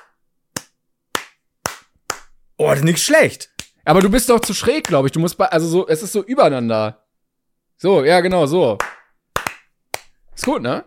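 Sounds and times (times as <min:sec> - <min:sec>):
hand claps with palms offset: 0:00.0 - 0:02.3, 0:03.5 - 0:05.0, 0:08.8 - 0:10.6
speech: 0:02.6 - 0:07.0, 0:07.8 - 0:08.9, 0:10.4 - 0:10.8.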